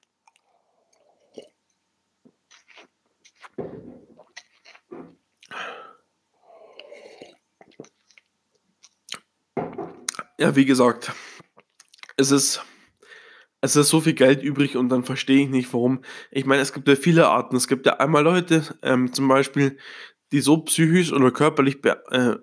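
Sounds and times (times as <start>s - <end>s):
person drinking a sip of water: 0.0s - 9.3s
speech: 10.4s - 11.3s, 12.2s - 12.7s, 13.6s - 22.4s.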